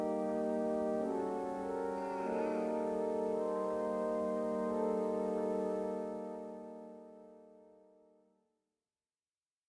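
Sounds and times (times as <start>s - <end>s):
French organ music: 0.0s - 7.2s.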